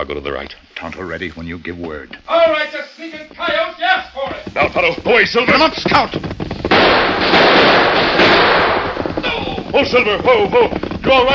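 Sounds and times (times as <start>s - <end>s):
speech: 0.0s - 6.4s, 9.7s - 11.3s
harsh crackling roar: 3.3s - 11.3s
gunshot: 5.5s - 11.3s.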